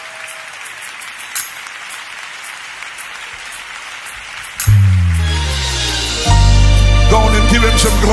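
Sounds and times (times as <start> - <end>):
audience clapping: 0.0 - 6.2
sustained organ chord: 4.7 - 8.1
speech: 7.1 - 8.1.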